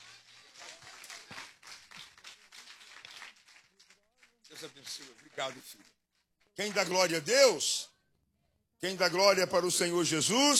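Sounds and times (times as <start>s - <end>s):
audience clapping: 0.0s - 7.5s
speech: 4.6s - 6.0s, 6.6s - 7.9s, 8.8s - 10.5s.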